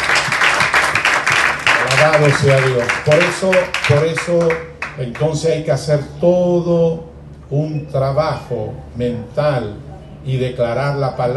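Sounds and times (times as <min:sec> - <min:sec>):
audience clapping: 0:00.0 - 0:05.4
speech: 0:02.0 - 0:11.3.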